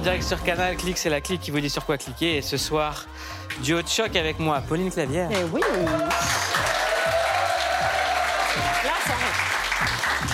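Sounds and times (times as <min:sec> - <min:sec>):
speech: 0:00.0 - 0:06.7
studio audience applauding: 0:05.3 - 0:10.3.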